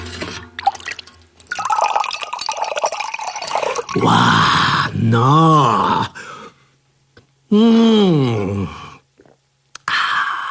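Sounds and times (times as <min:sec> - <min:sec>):
overly fizzy beer being poured away: 0:00.4 - 0:04.0
speech: 0:03.9 - 0:06.1, 0:07.5 - 0:08.2.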